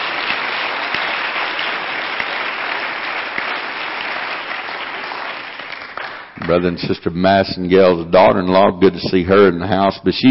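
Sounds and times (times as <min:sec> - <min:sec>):
audience clapping for guests: 0:00.0 - 0:07.1
speech: 0:06.5 - 0:10.2.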